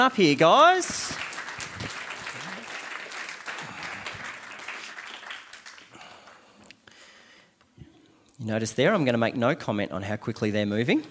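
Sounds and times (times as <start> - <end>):
speech: 0.0 - 1.2, 8.4 - 11.0
audience applause welcoming guests to the front: 0.3 - 6.5.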